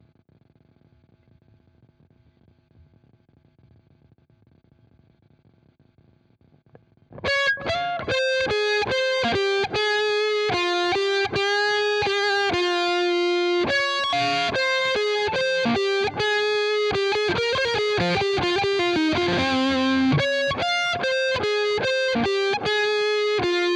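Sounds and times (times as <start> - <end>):
guitar: 6.7 - 23.7.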